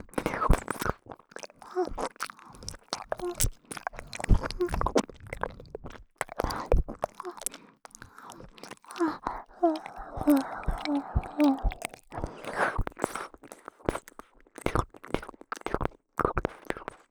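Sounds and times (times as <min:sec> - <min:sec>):
ASMR ear licking on the left ear: 0:00.0 - 0:17.0.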